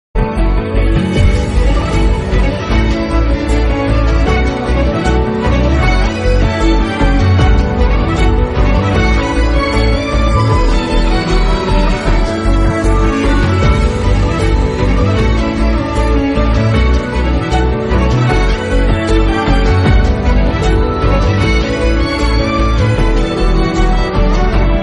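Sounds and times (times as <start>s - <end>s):
sad background music: 0.2s - 24.8s.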